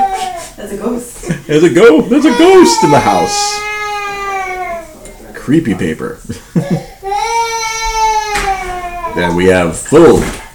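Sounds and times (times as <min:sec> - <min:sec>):
baby crying in the background: 0:00.0 - 0:00.6, 0:02.1 - 0:05.3, 0:06.6 - 0:09.7
speech: 0:00.6 - 0:03.7, 0:05.5 - 0:06.9, 0:09.2 - 0:10.4
laughter: 0:06.2 - 0:07.0.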